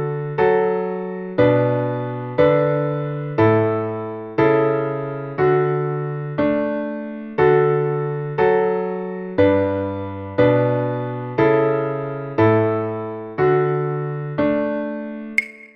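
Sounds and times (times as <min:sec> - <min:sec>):
slow piano: 0:00.0 - 0:15.6.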